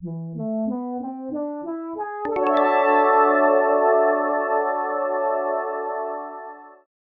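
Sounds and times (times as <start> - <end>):
triumphant jingle: 2.3 - 6.8.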